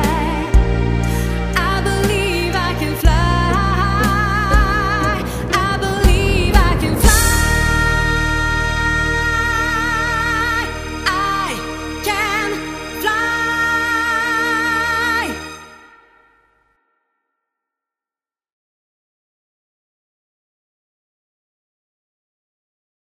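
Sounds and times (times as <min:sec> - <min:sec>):
gospel lead vocal: 0:00.0 - 0:16.2.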